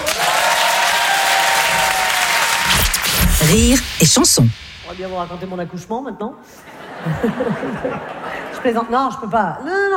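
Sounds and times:
audience applause: 0.0 - 2.8
speech: 3.5 - 9.9
laughter: 6.6 - 8.9.

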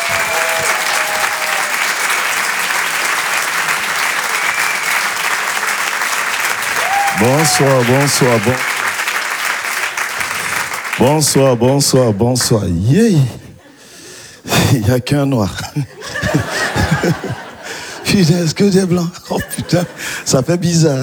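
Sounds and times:
excited vocal whoop: 0.0 - 1.9, 6.7 - 8.5
laughter: 0.0 - 8.8, 15.6 - 20.6
audience applause: 0.0 - 12.9
speech: 7.2 - 8.7, 11.0 - 13.4, 14.7 - 17.4, 18.1 - 21.0.

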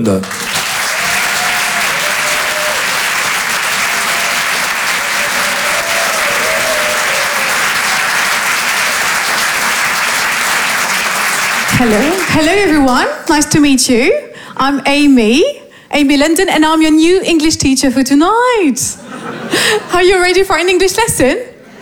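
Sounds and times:
speech: 0.0 - 0.4, 11.8 - 21.5
audience clapping for a comedy stage performer: 0.0 - 13.5
laughter: 19.0 - 20.1, 21.6 - 21.8.

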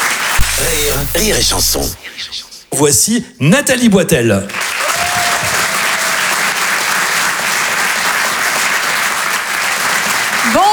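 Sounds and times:
comedy-club audience applause for a comedian on stage: 0.0 - 1.8, 4.5 - 10.7
speech: 0.6 - 4.9.

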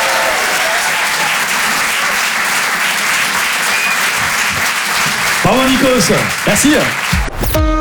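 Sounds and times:
comedy club audience clapping: 0.0 - 7.7
speech: 5.5 - 7.7.

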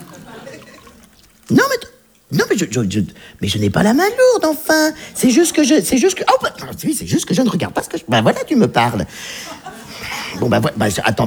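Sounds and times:
drink pouring into a glass: 0.0 - 3.4
laughter: 0.0 - 8.4, 9.0 - 11.2
speech: 1.5 - 9.7, 10.4 - 11.2.

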